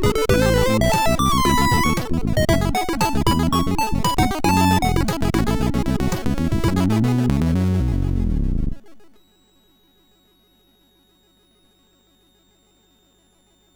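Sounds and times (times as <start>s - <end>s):
waves synthesized on MOS6581 chip: 0.0s - 8.8s.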